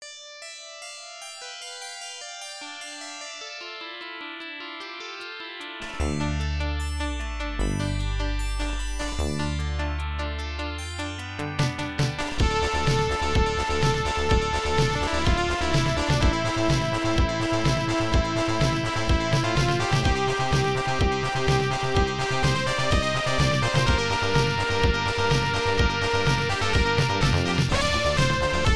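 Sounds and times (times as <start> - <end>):
metal music: 5.8 - 28.7.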